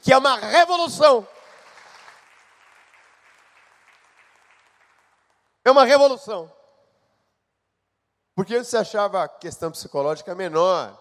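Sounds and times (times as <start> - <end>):
speech: 0.1 - 1.4, 5.6 - 6.6, 8.4 - 10.9
crowd applauding: 1.1 - 5.6.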